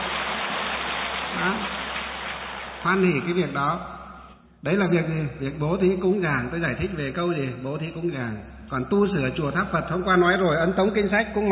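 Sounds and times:
loud applause: 0.0s - 3.5s
speech: 1.4s - 1.8s, 2.8s - 4.0s, 4.6s - 11.5s.

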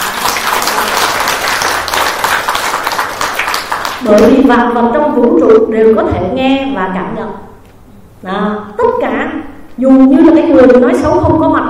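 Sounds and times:
audience applause: 0.0s - 4.0s
speech: 4.1s - 7.5s, 8.2s - 11.6s.

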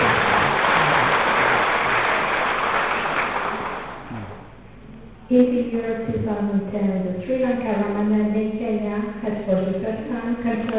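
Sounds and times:
applause: 0.0s - 4.1s
speech: 5.3s - 10.7s.

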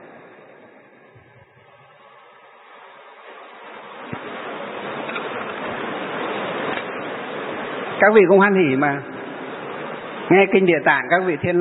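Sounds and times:
rain falling: 0.0s - 11.5s
speech: 8.0s - 9.1s, 10.3s - 11.5s.

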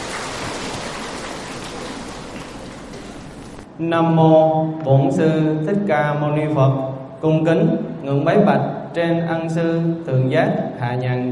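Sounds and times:
long loud audience applause: 0.0s - 3.6s
speech: 3.8s - 11.3s.

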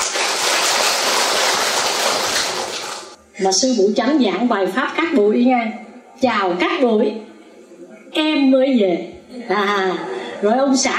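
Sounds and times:
audience applause: 0.0s - 3.2s
speech: 3.4s - 7.3s, 8.2s - 10.9s.

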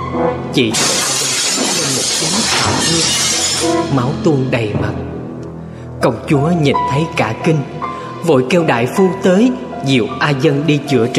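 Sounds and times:
speech: 0.2s - 1.1s, 2.3s - 5.2s, 6.0s - 11.1s
flower vase knocked off a table, falling and smashing: 0.6s - 3.9s.

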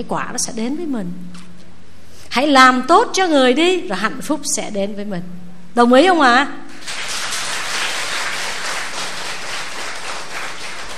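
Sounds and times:
speech: 0.0s - 1.5s, 2.3s - 6.6s
audience applause during a talk on ethics: 6.7s - 10.9s.

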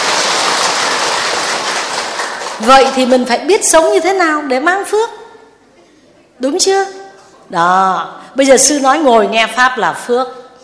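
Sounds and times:
crowd applause: 0.0s - 3.0s
speech: 2.6s - 5.2s, 6.4s - 10.4s.

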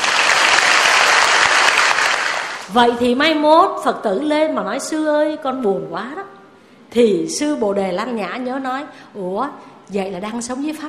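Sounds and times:
audience applause at a Buddhist dharma talk: 0.0s - 2.7s
speech: 2.7s - 10.8s.

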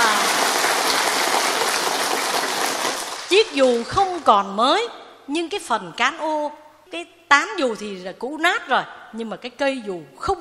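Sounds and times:
audience applause: 0.0s - 3.9s
speech: 3.5s - 10.3s.

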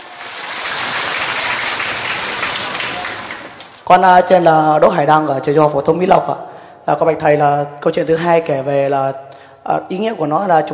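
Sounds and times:
audience applause: 0.0s - 3.8s
speech: 3.9s - 10.7s.

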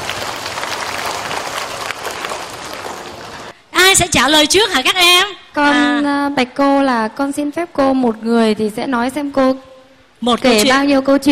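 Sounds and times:
children applauding: 0.0s - 3.6s
speech: 3.9s - 11.3s.

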